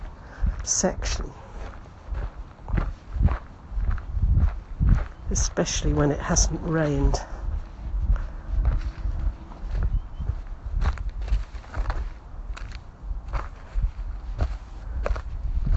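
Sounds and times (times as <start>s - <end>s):
footsteps on dry dead bark and leaves: 0.0s - 15.7s
speech: 0.6s - 1.4s, 5.3s - 7.4s
low rumble: 1.3s - 15.7s.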